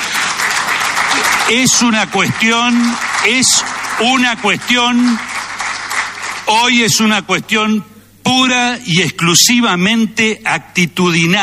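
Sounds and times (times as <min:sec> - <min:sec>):
applause: 0:00.0 - 0:07.2
speech: 0:01.5 - 0:05.3, 0:06.5 - 0:11.4.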